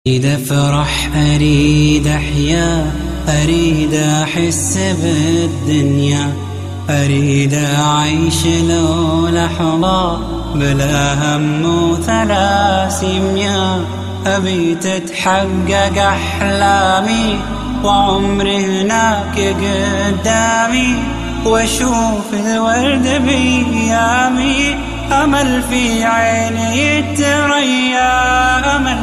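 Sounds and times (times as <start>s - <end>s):
beautiful nasheed singing: 0.0s - 29.0s.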